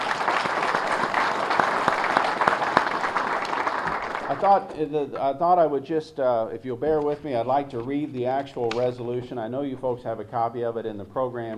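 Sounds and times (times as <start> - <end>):
audience applause: 0.0 - 4.7
speech: 4.3 - 11.5.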